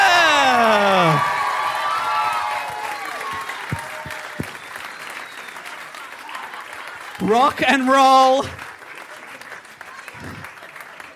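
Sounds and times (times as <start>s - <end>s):
audience whoops at a live comedy show: 0.0s - 6.5s
audience clapping at a live comedy show: 0.0s - 11.1s
speech: 7.3s - 8.6s.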